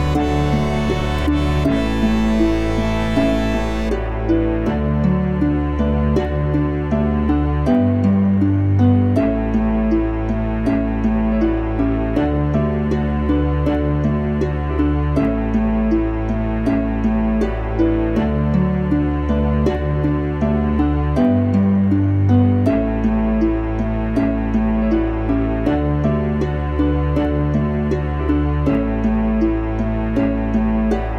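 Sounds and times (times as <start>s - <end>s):
accordion: 0.0s - 4.3s
harp: 0.0s - 31.1s
piano: 0.0s - 31.1s
strings: 0.0s - 31.1s.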